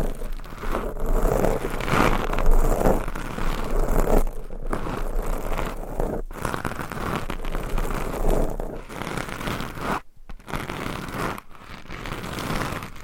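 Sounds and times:
microphone scratching: 0:00.0 - 0:13.0.

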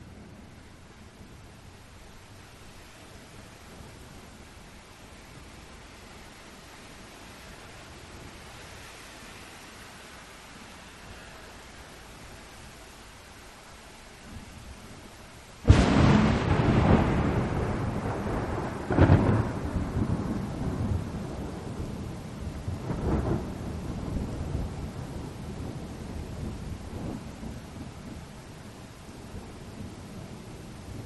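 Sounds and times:
rain hiss: 0:00.0 - 0:31.0
thunder cracking and rumbling: 0:15.6 - 0:22.1, 0:22.7 - 0:28.2.

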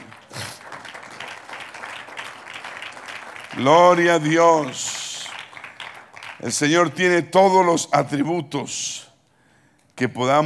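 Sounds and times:
audience applause: 0:00.0 - 0:06.5
speech: 0:03.6 - 0:05.0, 0:06.4 - 0:09.0, 0:10.0 - 0:10.4.

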